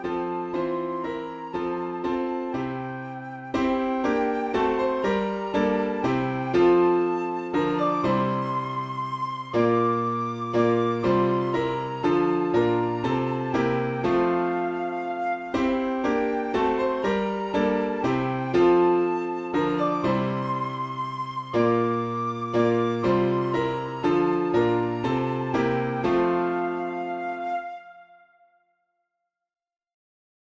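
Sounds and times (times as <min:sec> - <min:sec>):
piano: 0:00.0 - 0:28.6
beginner flute solo: 0:00.0 - 0:28.7.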